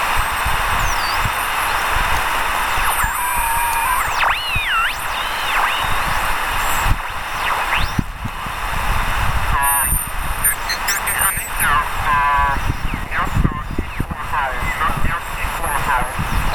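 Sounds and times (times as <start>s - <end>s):
VFO radio oscillator signal at 14 MHz: 0.2s - 16.5s.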